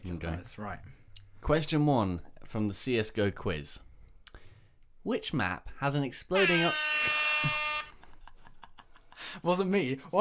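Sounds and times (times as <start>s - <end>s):
speech: 0.0s - 3.9s, 5.0s - 7.6s, 9.4s - 10.2s
electronic quiz buzzer: 6.4s - 8.0s.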